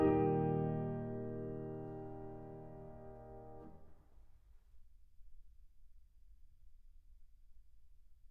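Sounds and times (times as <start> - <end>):
piano prelude in E flat major: 0.0 - 3.9.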